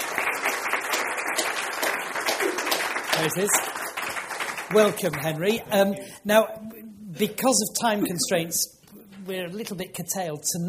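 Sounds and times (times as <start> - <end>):
audience applause welcoming a guest onto the stage: 0.0 - 5.7
speech: 3.2 - 3.8, 4.7 - 10.6.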